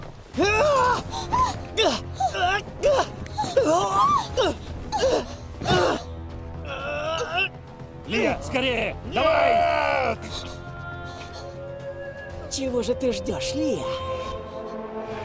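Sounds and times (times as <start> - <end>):
woman crying: 0.4 - 6.1, 10.0 - 12.5
speech: 8.1 - 10.5, 12.6 - 14.2.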